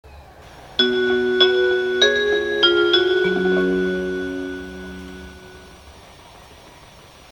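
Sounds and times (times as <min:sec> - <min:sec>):
chime: 0:00.8 - 0:05.8.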